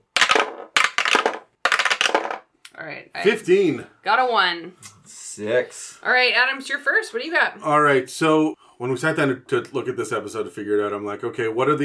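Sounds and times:
dice being rolled: 0.0s - 2.5s
speech: 2.8s - 11.8s.

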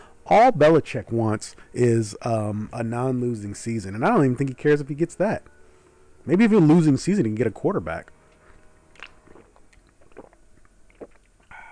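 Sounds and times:
speech: 0.3s - 5.5s, 6.2s - 8.2s
person drinking cold water: 8.6s - 11.7s
satisfied exhale: 11.5s - 11.7s.

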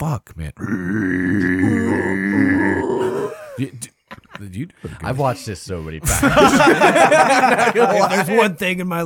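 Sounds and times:
speech: 0.1s - 1.7s, 4.6s - 9.0s
person imitating koala bears fighting: 0.6s - 3.6s
laughter: 3.1s - 8.6s.

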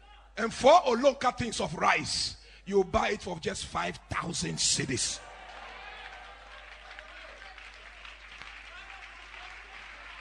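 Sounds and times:
speech: 0.4s - 5.3s
audience clapping: 5.3s - 10.1s.

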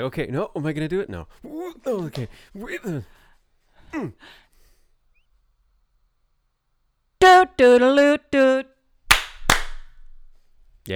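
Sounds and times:
speech: 0.0s - 3.2s, 3.9s - 4.4s, 7.2s - 8.7s
hands clapping: 1.9s - 2.9s, 9.1s - 10.0s.

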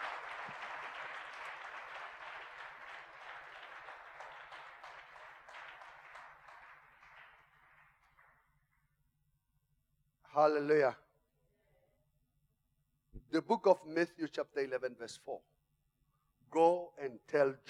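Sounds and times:
audience clapping: 0.0s - 8.9s
speech: 10.4s - 11.0s, 13.3s - 15.5s, 16.5s - 17.6s.

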